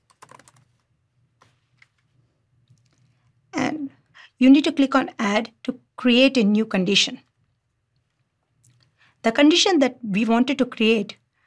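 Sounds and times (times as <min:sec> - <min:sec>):
typing on a computer keyboard: 0:00.0 - 0:00.8
speech: 0:04.4 - 0:07.3, 0:09.2 - 0:11.2.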